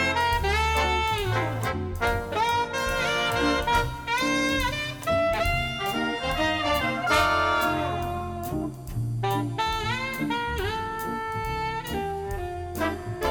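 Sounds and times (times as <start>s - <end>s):
big band playing: 0.0s - 13.2s.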